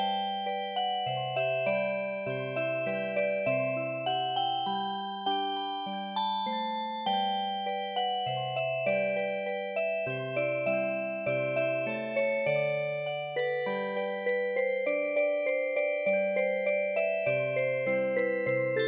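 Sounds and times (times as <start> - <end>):
MIDI music box playing a traditional tune: 0.0 - 18.8.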